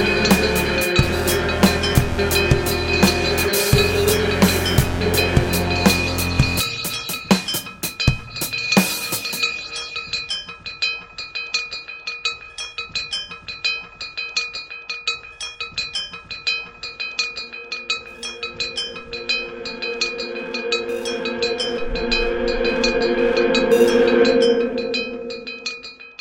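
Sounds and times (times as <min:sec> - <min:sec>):
music: 0:00.0 - 0:10.4, 0:17.4 - 0:26.1.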